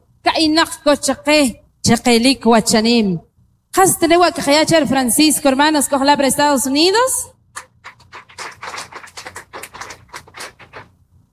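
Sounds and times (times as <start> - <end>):
speech: 0.3 - 7.3
crowd applauding: 7.6 - 10.8.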